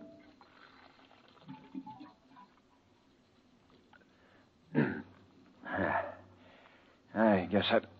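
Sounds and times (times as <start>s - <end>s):
water poured from a water cooler: 0.0s - 2.7s
speech: 7.5s - 7.9s.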